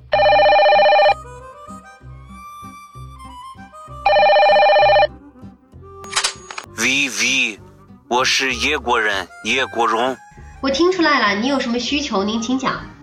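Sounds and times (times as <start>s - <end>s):
telephone ringing after dialing: 0.1s - 1.2s, 4.0s - 5.2s
speech: 7.1s - 12.9s.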